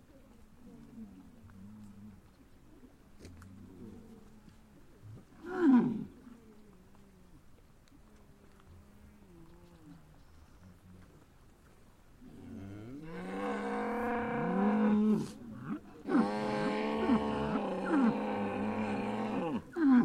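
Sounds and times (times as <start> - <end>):
cow mooing: 12.6 - 15.4, 16.1 - 20.0.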